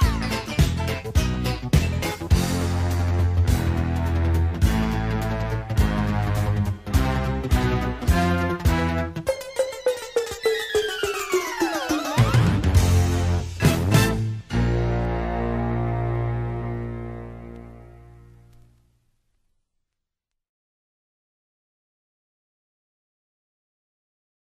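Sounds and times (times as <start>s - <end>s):
instrumental theme music: 0.0s - 18.6s.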